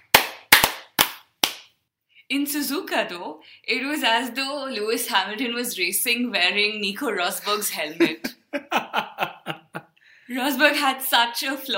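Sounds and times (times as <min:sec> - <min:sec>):
applause: 0:00.1 - 0:01.6
speech: 0:02.3 - 0:09.2, 0:10.3 - 0:11.7
laughter: 0:07.4 - 0:09.8.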